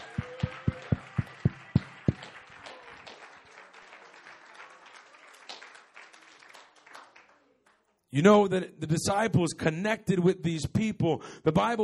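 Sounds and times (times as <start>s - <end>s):
audience clapping hands: 0.0s - 8.0s
speech: 8.1s - 11.8s.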